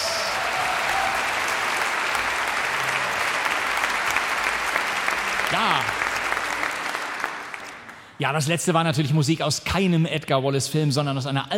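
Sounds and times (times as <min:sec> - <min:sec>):
concert audience applause: 0:00.0 - 0:08.2
speech: 0:08.2 - 0:11.5.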